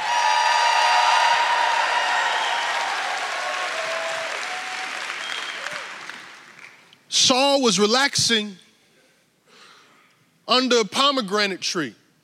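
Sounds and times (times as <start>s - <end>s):
crowd whooping and shouting: 0.0s - 6.2s
large crowd applauding: 0.0s - 6.9s
speech: 7.6s - 8.6s, 10.5s - 12.0s.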